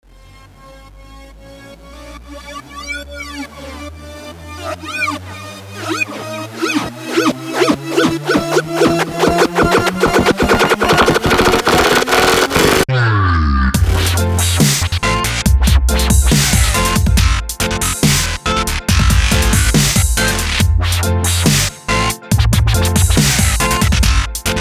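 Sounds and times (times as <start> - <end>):
goofy dubstep intro music: 4.5 - 12.9, 13.8 - 24.5.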